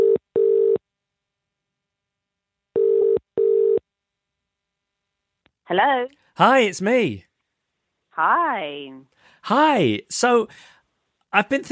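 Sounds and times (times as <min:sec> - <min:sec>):
telephone call ringback tone: 0:00.0 - 0:00.8, 0:02.8 - 0:03.8
speech: 0:05.7 - 0:07.3, 0:08.2 - 0:11.7.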